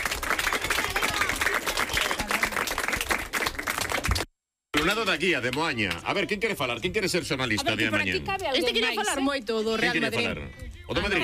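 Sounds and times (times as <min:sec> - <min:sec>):
children's group applause: 0:00.0 - 0:06.0
speech: 0:04.8 - 0:11.2.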